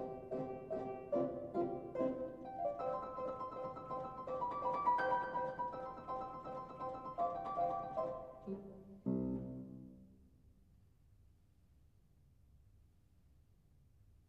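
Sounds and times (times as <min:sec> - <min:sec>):
solo fortepiano piece: 0:00.0 - 0:10.2.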